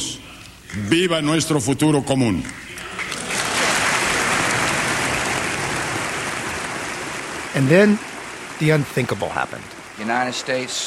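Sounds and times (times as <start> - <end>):
speech: 0.7 - 2.7, 7.6 - 10.8
applause in Congress from a large crowd: 3.0 - 10.8.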